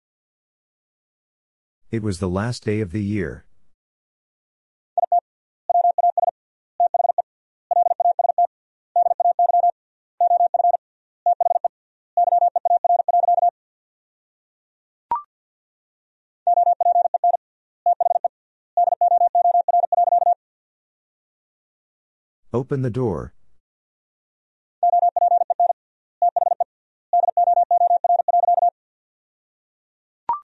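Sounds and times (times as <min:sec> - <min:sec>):
speech: 0:01.9 - 0:03.5, 0:22.6 - 0:23.4
rapid Morse code tones at about 50 words per minute: 0:05.0 - 0:13.5, 0:16.5 - 0:20.4, 0:24.8 - 0:26.6, 0:27.2 - 0:28.7.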